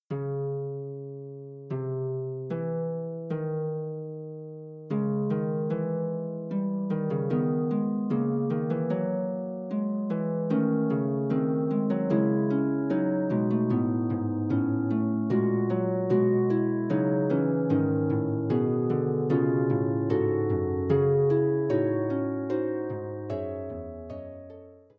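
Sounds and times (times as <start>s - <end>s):
harp playing a fugue: 0.1s - 24.9s.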